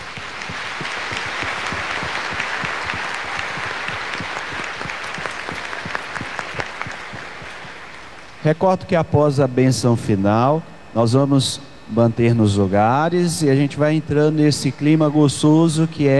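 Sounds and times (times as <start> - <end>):
applause: 0.0 - 8.4
speech: 8.5 - 16.1.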